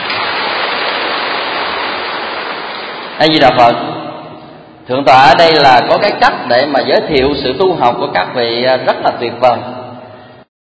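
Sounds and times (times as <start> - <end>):
audience applause: 0.0 - 3.2
speech: 3.2 - 4.0, 4.9 - 9.8.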